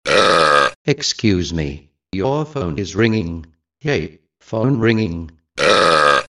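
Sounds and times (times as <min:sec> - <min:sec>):
person burping: 0:00.0 - 0:00.8, 0:05.6 - 0:06.2
person saying excuse me: 0:00.9 - 0:05.4.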